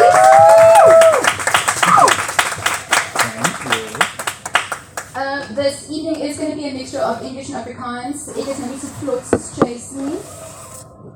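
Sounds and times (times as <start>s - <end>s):
audience applause: 0.0s - 5.0s
speech: 7.0s - 10.4s.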